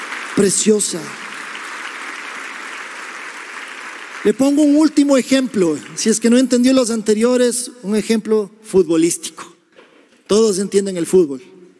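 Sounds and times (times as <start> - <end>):
crowd applauding: 0.0 - 6.4
speech: 0.4 - 1.4, 4.2 - 9.5, 10.3 - 11.5.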